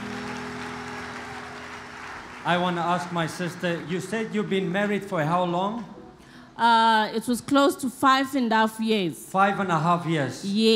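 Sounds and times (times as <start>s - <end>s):
audience clapping hands: 0.0s - 5.5s
speech: 2.4s - 6.0s, 6.6s - 10.7s.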